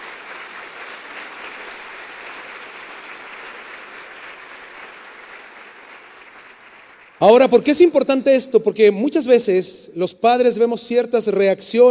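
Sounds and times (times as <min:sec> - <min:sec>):
audience applauding: 0:00.0 - 0:07.9
speech: 0:07.2 - 0:11.8.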